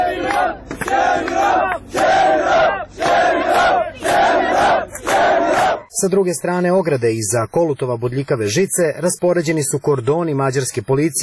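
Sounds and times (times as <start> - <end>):
crowd of migrants at a barbed-wire border fence chanting: 0.0 - 5.9
speech: 6.0 - 11.2.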